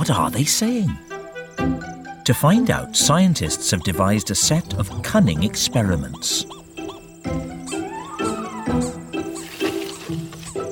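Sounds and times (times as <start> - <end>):
speech: 0.0 - 6.6
rodent barks, squeaks and chirps: 3.4 - 10.6.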